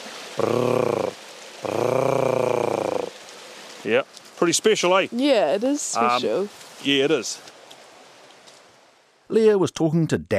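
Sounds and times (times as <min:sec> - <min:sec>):
speech: 0:00.4 - 0:01.0, 0:03.9 - 0:07.5, 0:09.3 - 0:10.3
female blue duck giving a hard rattling purr: 0:00.4 - 0:03.1.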